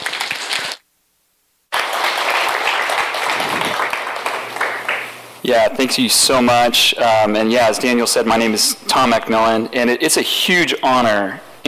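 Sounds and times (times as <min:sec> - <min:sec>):
audience applause welcoming a guest speaker at a church service: 0:00.0 - 0:00.8, 0:01.7 - 0:05.2
speech: 0:05.5 - 0:11.6.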